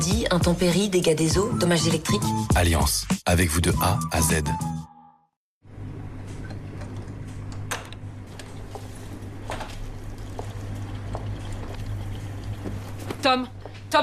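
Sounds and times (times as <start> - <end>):
speech: 0.0 - 4.8, 13.3 - 14.0
dishwasher running: 5.8 - 14.0
water splashing: 8.6 - 13.2.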